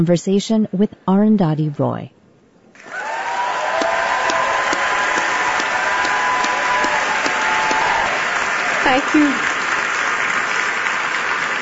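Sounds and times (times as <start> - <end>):
speech: 0.0 - 2.2, 8.9 - 9.5
theater audience applause at the Sydney Goldstein Theater in San Francisco welcoming Arundhati Roy: 2.8 - 11.6.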